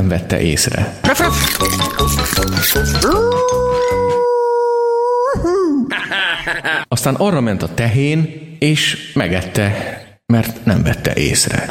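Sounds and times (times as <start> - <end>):
speech: 0.0 - 4.2, 6.1 - 11.6
rhythmic music: 1.1 - 3.6
wolf howling: 2.9 - 5.4
laughter: 5.9 - 6.9.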